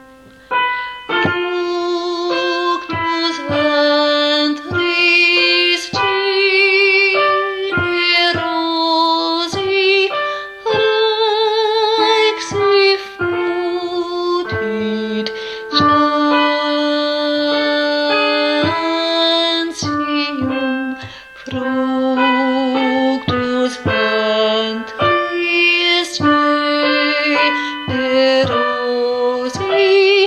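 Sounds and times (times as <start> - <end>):
alto voice singing a hymn: 1.1 - 30.2.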